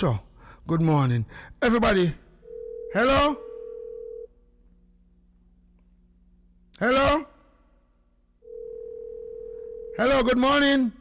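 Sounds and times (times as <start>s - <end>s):
speech: 0.0s - 2.2s, 2.9s - 3.5s, 6.8s - 7.3s, 10.0s - 10.9s
faint low hum: 0.0s - 10.9s
telephone tone from an incoming call: 2.4s - 4.3s, 8.4s - 10.2s.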